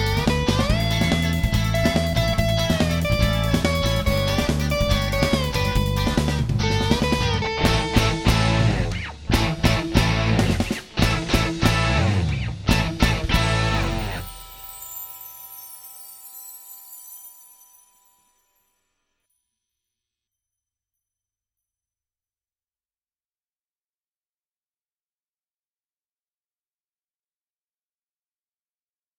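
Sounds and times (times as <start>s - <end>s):
polka music: 0.0s - 14.4s.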